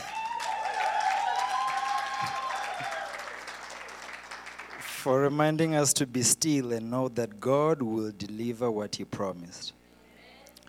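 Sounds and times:
audience clapping: 0.0s - 5.1s
speech: 5.0s - 9.8s.

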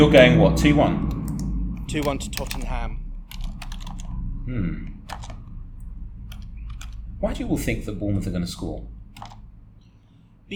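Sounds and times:
speech: 0.0s - 1.1s, 1.9s - 3.0s, 4.5s - 4.9s, 7.2s - 9.3s
keyboard typing while writing out football score predictions: 1.0s - 4.2s, 4.9s - 5.6s, 6.3s - 7.0s, 9.2s - 9.4s.

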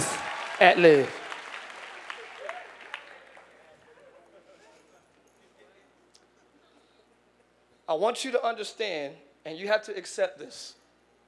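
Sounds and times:
crowd of people clapping their hands: 0.0s - 3.8s
speech: 0.6s - 1.2s, 7.9s - 10.8s.

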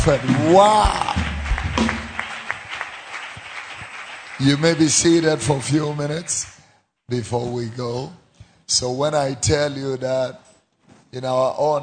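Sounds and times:
speech: 0.0s - 1.0s, 4.4s - 6.5s, 7.1s - 10.4s, 11.1s - 11.8s
church congregation clapping: 0.0s - 6.7s.

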